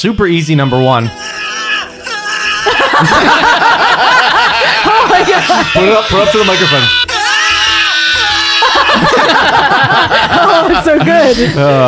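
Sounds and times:
speech: 0.0 - 1.2, 2.9 - 3.7, 5.1 - 7.0, 8.7 - 11.8
sampled male yell from video game: 0.5 - 9.4
laughter: 1.2 - 11.8.

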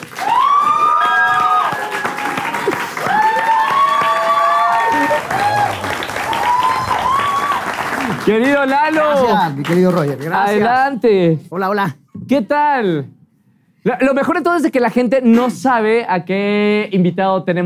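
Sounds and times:
whoops and cheers: 0.0 - 8.0
audience applause: 0.0 - 10.6
speech: 8.3 - 13.2, 13.8 - 17.6.

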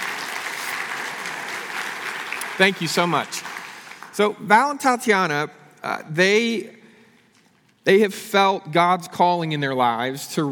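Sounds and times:
audience clapping: 0.0 - 4.4
speech: 2.6 - 3.5, 4.2 - 6.8, 7.8 - 10.5.

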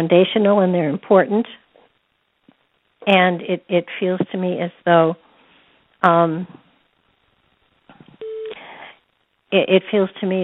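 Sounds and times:
speech: 0.0 - 1.6, 3.0 - 5.2, 6.0 - 6.6, 9.5 - 10.4
telephone beeping: 8.2 - 8.6.

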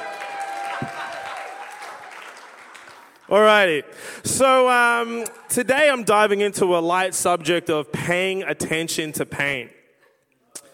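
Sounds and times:
audience applause: 0.0 - 3.3
speech: 3.3 - 9.8.

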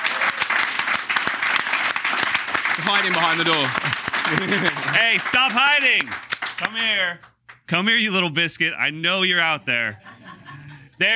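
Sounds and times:
audience applause: 0.0 - 7.1
laughter: 2.8 - 6.1, 9.3 - 11.1
speech: 2.8 - 10.1, 11.0 - 11.1.

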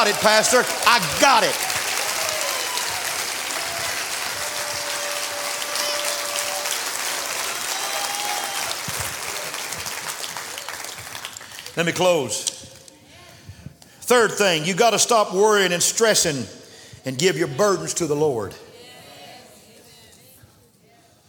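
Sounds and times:
speech: 0.0 - 1.7, 11.8 - 12.6, 14.1 - 18.7
crowd clapping hands: 0.0 - 12.0.

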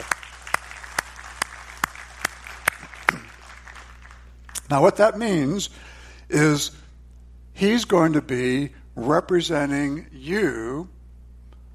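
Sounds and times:
slow steady audience clapping: 0.0 - 4.7
speech: 4.7 - 6.8, 7.6 - 11.0.

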